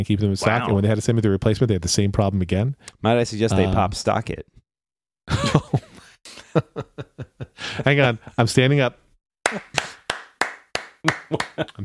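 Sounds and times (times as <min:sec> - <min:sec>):
speech: 0:00.0 - 0:04.6, 0:05.3 - 0:05.8, 0:06.6 - 0:09.8, 0:11.0 - 0:11.8
laughter: 0:05.3 - 0:08.2, 0:11.1 - 0:11.8
hands clapping: 0:09.4 - 0:11.8.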